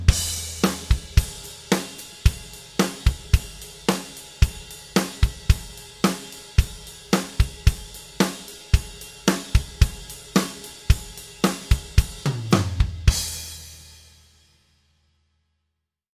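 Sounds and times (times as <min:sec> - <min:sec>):
drums: 0:00.0 - 0:14.8.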